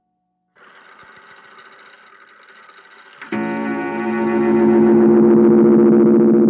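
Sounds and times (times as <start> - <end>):
weird clock bell striking: 3.2 - 6.4.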